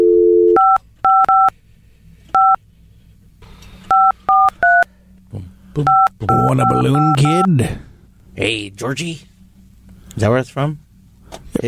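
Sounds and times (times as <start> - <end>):
telephone dial tone: 0.0 - 1.5, 5.9 - 7.3
faint hum: 0.0 - 11.6
telephone keypad beeps: 3.9 - 4.8, 5.9 - 7.5
speech: 5.8 - 9.3, 10.2 - 10.8.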